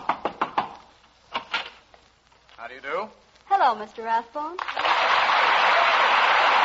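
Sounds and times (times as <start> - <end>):
knocking on a door: 0.0 - 0.8
speech: 2.7 - 6.5.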